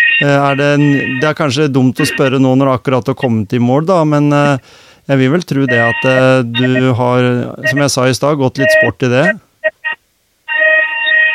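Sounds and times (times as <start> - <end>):
alarm going off: 0.0 - 1.3, 2.0 - 2.4, 5.7 - 6.8, 7.6 - 7.9, 8.6 - 9.9
speech: 0.2 - 9.4.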